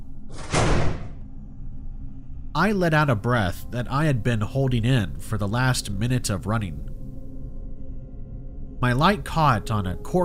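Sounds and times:
door slamming shut: 0:00.3 - 0:01.2
low steady hum: 0:01.1 - 0:10.2
speech: 0:02.6 - 0:07.0, 0:08.8 - 0:10.2.

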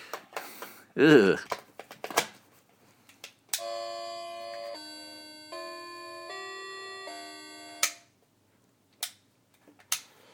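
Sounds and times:
speech: 0:01.0 - 0:01.5
creepy-sounding clock playing a slow buzzy tune: 0:03.6 - 0:07.9.

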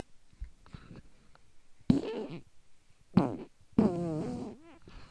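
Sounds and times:
fart: 0:01.9 - 0:02.5, 0:03.1 - 0:04.9.

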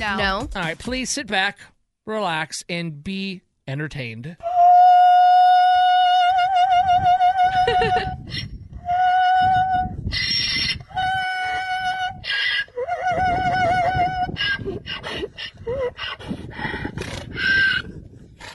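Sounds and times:
speech: 0:00.0 - 0:04.5, 0:07.0 - 0:08.5
donkey braying like an opera singer: 0:04.4 - 0:17.9.

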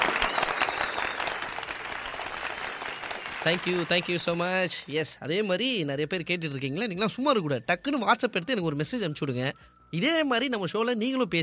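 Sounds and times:
applause: 0:00.0 - 0:04.8
speech: 0:03.4 - 0:11.4.

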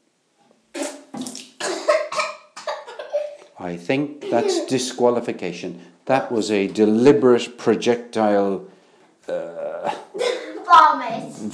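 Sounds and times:
person gargling water: 0:00.8 - 0:01.6, 0:09.3 - 0:10.1
speech: 0:03.6 - 0:10.0, 0:10.7 - 0:11.5.

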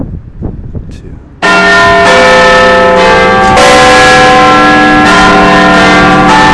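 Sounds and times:
Big Ben clock tower bell chiming: 0:01.4 - 0:06.5.

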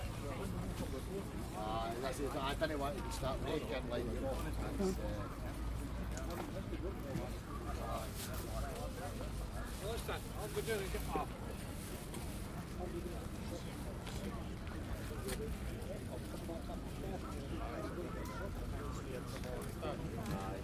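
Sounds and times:
market place soundscape: 0:00.0 - 0:20.6.

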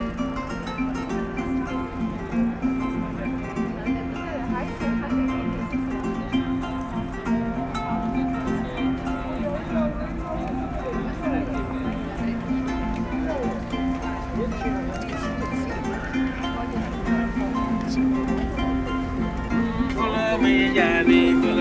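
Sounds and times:
African string instruments in Rome: 0:00.0 - 0:21.6
person singing in Rome: 0:17.7 - 0:21.6.

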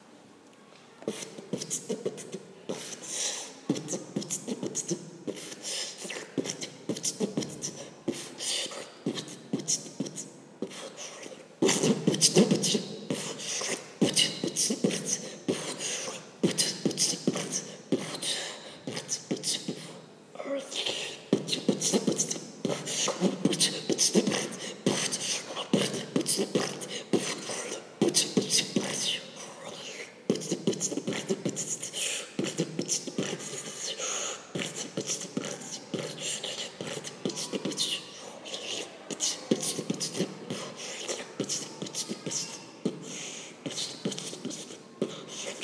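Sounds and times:
beatbox: 0:01.1 - 0:45.6.

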